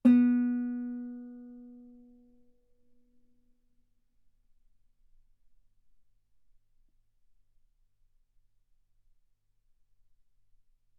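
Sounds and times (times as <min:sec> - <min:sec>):
loud guitar note on the B string: 0:00.0 - 0:01.7.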